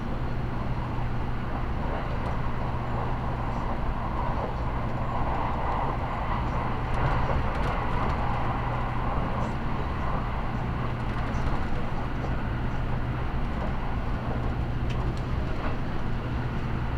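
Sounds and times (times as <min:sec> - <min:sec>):
Limited Express Midori No. 16 interior on the Nagasaki Main Line: 0:00.0 - 0:16.9.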